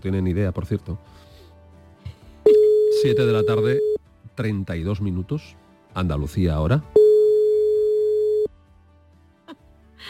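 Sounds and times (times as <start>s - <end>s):
speech: 0.0s - 1.3s, 3.0s - 7.0s
phone line ringback tone beep: 2.5s - 4.0s, 7.0s - 8.5s.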